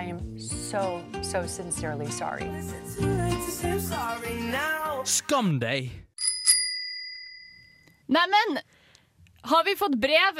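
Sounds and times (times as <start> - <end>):
speech: 0.7 - 6.1, 8.1 - 8.8, 9.4 - 10.3
bicycle bell ringing: 6.2 - 8.0.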